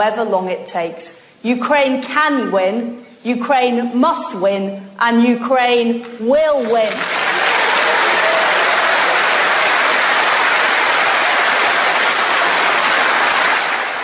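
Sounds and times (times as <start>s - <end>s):
speech: 0.0s - 7.2s
large crowd applauding: 6.8s - 14.0s.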